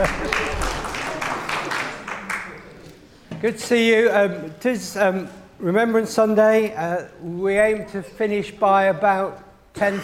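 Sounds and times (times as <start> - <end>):
round of applause: 0.0 - 2.7
speech: 3.4 - 10.0.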